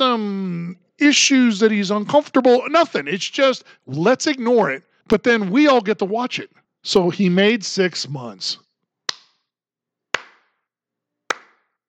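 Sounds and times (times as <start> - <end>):
speech: 1.0 - 8.6
slow sarcastic hand clapping: 9.1 - 9.4, 10.1 - 10.6, 11.3 - 11.7.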